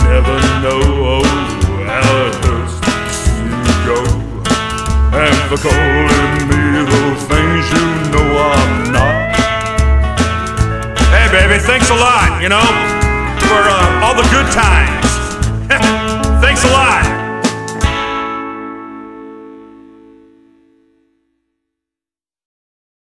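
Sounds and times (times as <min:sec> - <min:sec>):
rockabilly rock and roll music: 0:00.0 - 0:21.0.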